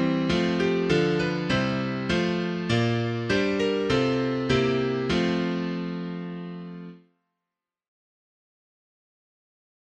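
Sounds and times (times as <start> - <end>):
piano: 0.0 - 7.1.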